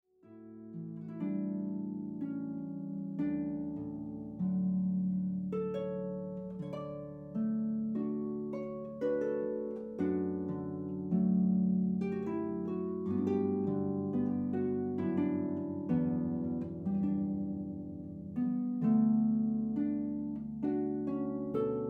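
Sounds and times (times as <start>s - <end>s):
harp: 0.2s - 21.8s.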